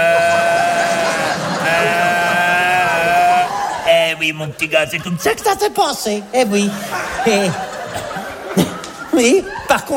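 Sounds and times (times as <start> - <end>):
human voice imitating a bellowing stag: 0.0 - 3.5
laughter: 0.0 - 4.2, 6.5 - 9.9
speech: 4.2 - 7.7, 9.2 - 9.9.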